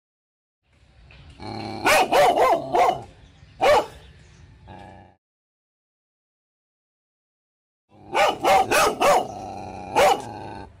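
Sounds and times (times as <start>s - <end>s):
dog barking: 1.8s - 4.0s, 8.1s - 10.4s.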